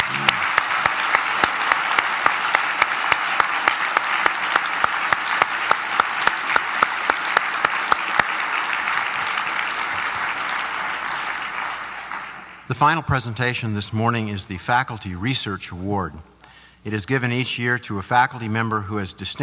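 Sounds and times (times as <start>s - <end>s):
crowd round of applause: 0.0s - 12.8s
speech: 12.8s - 19.4s.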